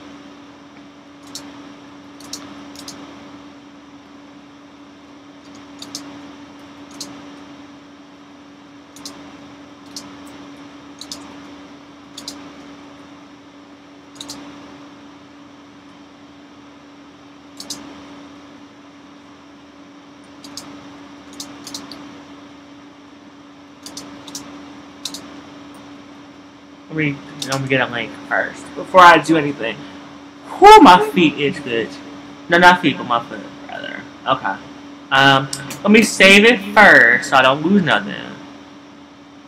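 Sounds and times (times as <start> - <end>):
typing on a keyboard: 2.2 - 3.0, 5.5 - 6.1, 6.9 - 7.1, 9.0 - 9.2, 11.0 - 11.3, 12.2 - 12.4, 14.2 - 14.4, 17.6 - 17.8, 21.3 - 22.0, 23.8 - 25.2
speech: 27.0 - 29.9, 30.6 - 33.6, 34.3 - 38.3.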